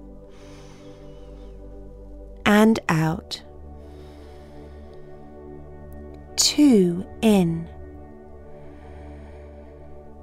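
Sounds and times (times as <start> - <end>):
deep breath in: 0.2 - 2.0, 3.8 - 5.8, 8.3 - 10.2
speech: 2.6 - 3.5, 6.6 - 7.8.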